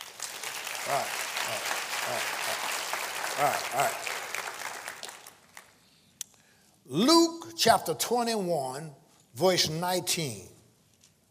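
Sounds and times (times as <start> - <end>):
audience clapping hands: 0.0 - 5.9
speech: 0.9 - 4.1, 6.9 - 10.5.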